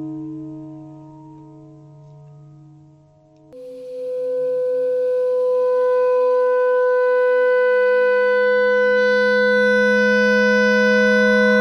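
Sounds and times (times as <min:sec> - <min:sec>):
clarinet notes: 0:03.6 - 0:11.5.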